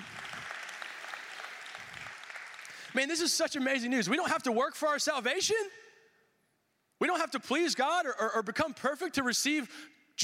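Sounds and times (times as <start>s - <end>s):
crowd clapping: 0.0s - 3.1s
speech: 3.0s - 5.8s, 7.0s - 10.2s.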